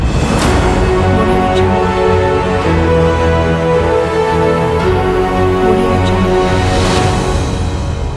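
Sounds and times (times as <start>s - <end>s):
epic action news logo music: 0.1s - 8.0s.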